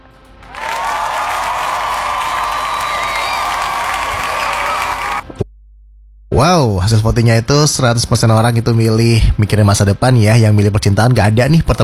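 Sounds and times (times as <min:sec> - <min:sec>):
audience applause and cheering: 0:00.4 - 0:05.3
speech: 0:06.4 - 0:11.8.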